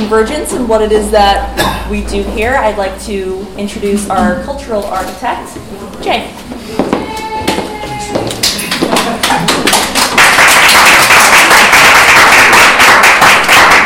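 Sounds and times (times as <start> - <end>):
speech: 0.0 - 7.0
applause: 8.7 - 13.8.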